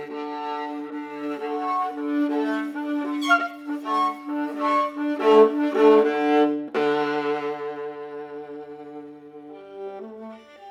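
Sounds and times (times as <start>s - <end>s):
improvised music in D minor: 0.1s - 8.6s.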